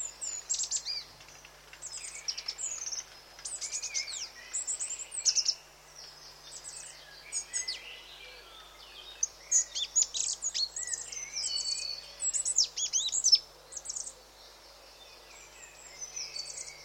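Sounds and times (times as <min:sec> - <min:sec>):
goldcrest calls: 0:00.0 - 0:16.8.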